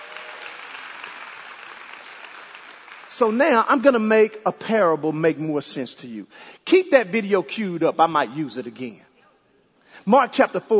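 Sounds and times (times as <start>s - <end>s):
audience hand clapping: 0.0s - 3.4s
speech: 3.1s - 9.1s, 10.0s - 10.7s.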